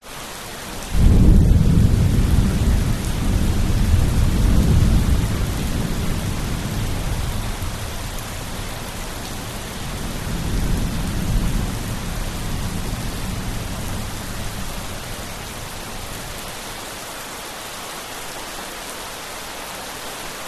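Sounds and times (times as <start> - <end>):
heavy rain drips on concrete in Bali Indonesia: 0.0 - 20.4
distant thunder in Bali Indonesia: 1.0 - 16.5.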